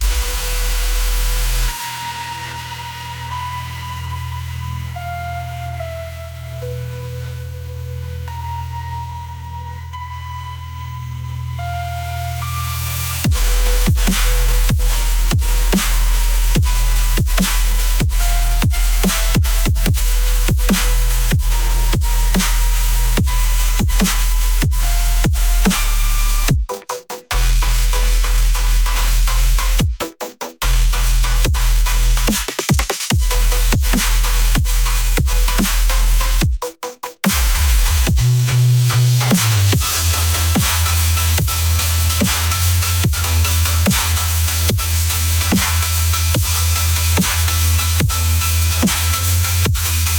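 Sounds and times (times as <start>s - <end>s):
bass: 0.0s - 50.1s.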